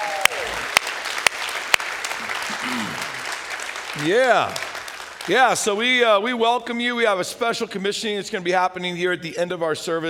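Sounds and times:
church congregation clapping for camp workers: 0.0s - 6.2s
speech: 4.0s - 4.7s, 5.3s - 10.0s.

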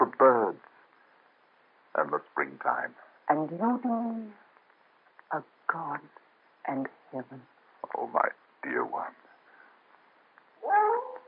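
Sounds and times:
speech: 2.1s - 4.4s, 5.3s - 9.2s
dog howling: 10.6s - 11.2s.

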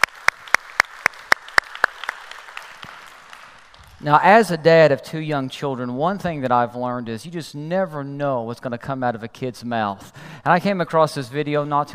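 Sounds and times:
church congregation clapping in rhythm to welcome online viewers: 0.0s - 4.7s
speech: 4.0s - 11.9s.

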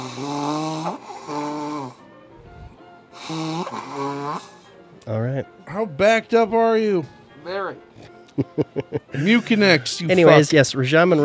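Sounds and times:
nose blowing: 0.0s - 4.9s
speech: 3.3s - 11.2s
laughter: 8.3s - 9.8s.

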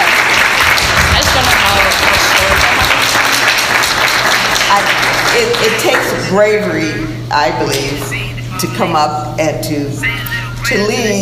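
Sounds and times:
audience clapping for students: 0.0s - 6.3s
speech: 5.6s - 11.2s.

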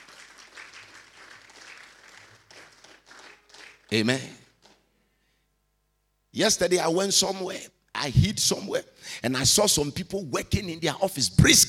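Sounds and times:
audience clapping: 0.0s - 4.9s
speech: 3.9s - 4.4s, 6.4s - 11.6s.

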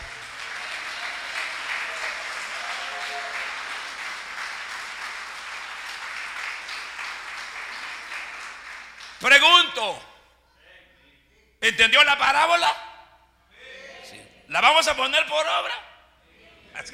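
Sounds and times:
audience applauding: 0.0s - 9.2s
speech: 9.2s - 10.1s, 11.6s - 12.8s, 14.5s - 15.9s, 16.8s - 16.9s.

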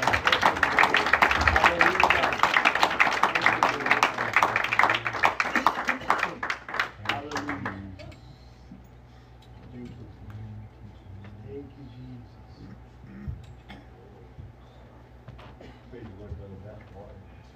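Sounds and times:
audience clapping hands: 0.0s - 7.9s.

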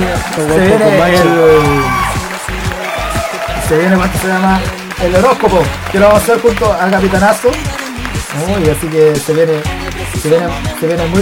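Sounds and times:
scattering of sharp claps: 0.0s - 1.4s, 2.0s - 11.1s
loud whoops and cheering voices: 0.1s - 3.9s
speech: 0.2s - 2.0s, 3.7s - 7.8s, 8.4s - 11.1s.

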